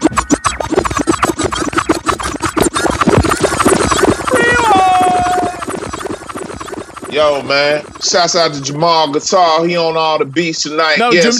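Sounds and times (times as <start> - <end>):
music: 0.0 - 8.5
DJ rewind record scratch effect: 0.0 - 9.8
high warbling pitch glides sweeping downward: 0.0 - 11.3
speech: 7.2 - 11.3.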